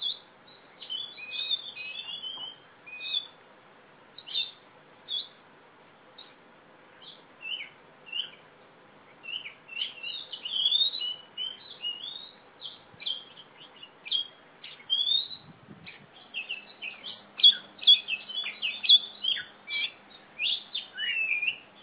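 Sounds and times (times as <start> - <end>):
female black Oriental magpie-robin competition bird in lively song in East Java: 0.0 - 3.4, 4.2 - 5.4, 7.0 - 8.4, 9.2 - 21.8.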